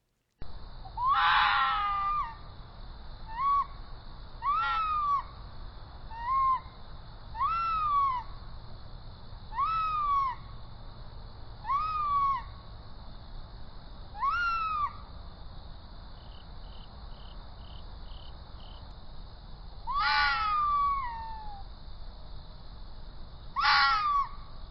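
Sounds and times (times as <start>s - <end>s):
red fox calling at night: 0.9s - 2.4s, 3.3s - 3.8s, 4.4s - 5.4s, 6.1s - 6.7s, 7.4s - 8.3s, 9.5s - 10.5s, 11.6s - 12.6s, 14.2s - 15.0s, 19.9s - 21.7s, 23.6s - 24.4s.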